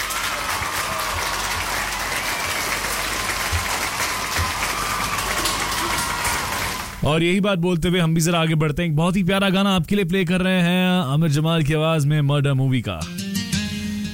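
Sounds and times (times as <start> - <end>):
crowd applause: 0.0 - 7.0
speech: 7.0 - 13.2.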